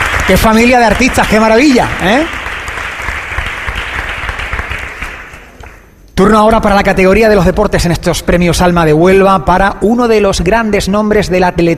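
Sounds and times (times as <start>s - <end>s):
audience applause: 0.0s - 5.8s
speech: 0.3s - 2.4s, 6.2s - 11.7s.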